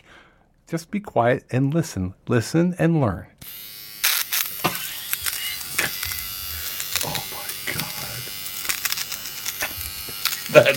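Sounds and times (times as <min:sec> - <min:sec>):
speech: 0:00.7 - 0:03.6
electric nose hair trimmer buzzing: 0:03.4 - 0:10.7.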